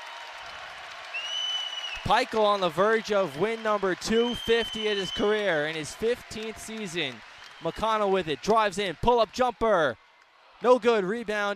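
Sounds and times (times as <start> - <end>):
large arena crowd cheering and applauding: 0.0 - 11.5
sharp whistle: 1.1 - 2.1, 3.4 - 5.4
speech: 2.1 - 10.0, 10.6 - 11.5.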